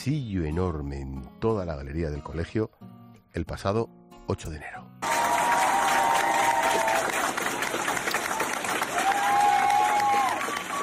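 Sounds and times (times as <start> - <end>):
speech: 0.0 - 5.3
schoolchildren and teachers applauding in a corridor: 5.0 - 10.8.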